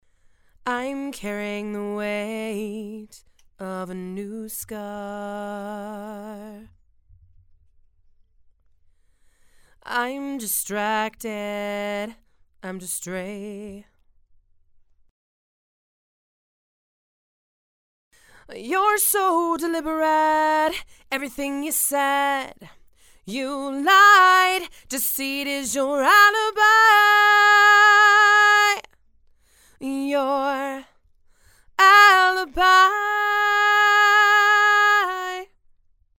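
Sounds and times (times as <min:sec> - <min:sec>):
female vocals: 0:00.6 - 0:06.7, 0:09.8 - 0:13.9, 0:18.3 - 0:28.9, 0:29.8 - 0:31.0, 0:31.7 - 0:35.6.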